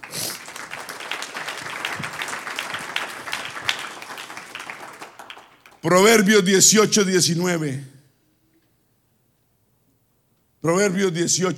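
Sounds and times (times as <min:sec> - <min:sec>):
crowd applause: 0:00.0 - 0:05.8
speech: 0:05.8 - 0:08.0, 0:10.6 - 0:11.5.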